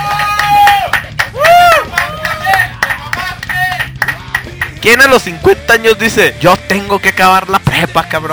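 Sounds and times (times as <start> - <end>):
whoops and shouted voices: 0.0 - 2.8
small group clapping: 0.0 - 4.8
speech: 4.8 - 8.3.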